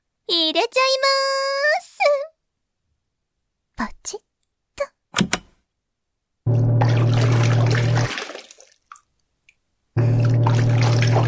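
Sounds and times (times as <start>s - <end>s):
speech: 0.3s - 2.2s, 3.8s - 4.3s
washing machine churning water: 6.5s - 9.0s, 10.0s - 11.2s.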